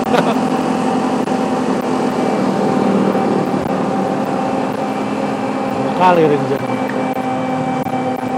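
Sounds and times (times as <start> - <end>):
speech: 0.2 - 0.5, 6.0 - 6.8
train passing: 1.6 - 8.2.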